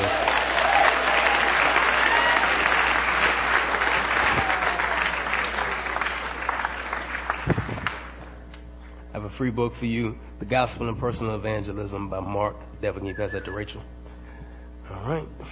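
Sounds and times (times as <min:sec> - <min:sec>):
audience applause: 0:00.0 - 0:08.4
speech: 0:09.4 - 0:14.0, 0:15.0 - 0:15.5.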